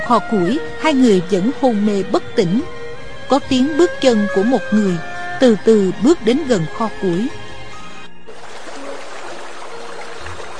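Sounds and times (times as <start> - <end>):
speech: 0.1 - 7.4
water dripping and trickling: 8.3 - 10.5.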